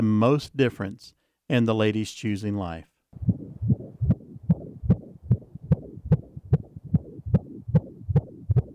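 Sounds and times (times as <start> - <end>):
speech: 0.0 - 3.3
fetal heartbeat on an ultrasound monitor: 3.2 - 8.7.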